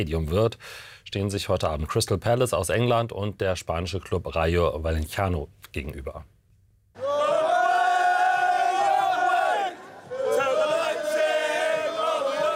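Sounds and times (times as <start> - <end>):
speech: 0.0 - 6.4
football fans singing in chorus: 7.0 - 12.5.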